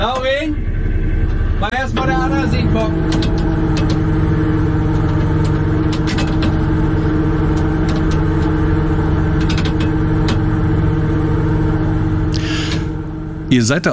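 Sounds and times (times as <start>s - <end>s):
engine of a shrimp fishing cutter in the Wadden Sea: 0.0s - 13.9s
faint clicks and clanks as nets are put out: 1.2s - 10.6s
speech: 1.6s - 3.5s, 13.5s - 13.9s.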